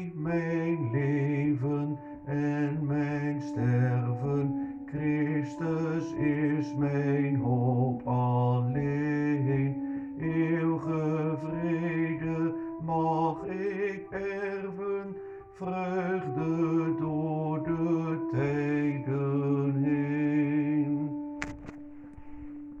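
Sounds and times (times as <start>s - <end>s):
hymn: 0.0s - 22.7s.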